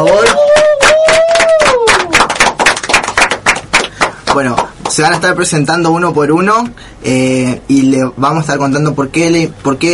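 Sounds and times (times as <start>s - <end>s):
person cheering in a long falling whoop: 0.0s - 2.4s
audience applause: 0.0s - 4.4s
speech: 5.0s - 9.9s.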